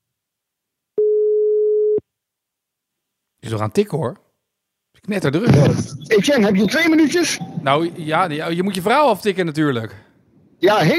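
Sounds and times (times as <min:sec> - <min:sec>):
telephone call ringing tone: 0:01.0 - 0:02.0
speech: 0:03.5 - 0:04.2, 0:05.0 - 0:10.0, 0:10.6 - 0:10.9.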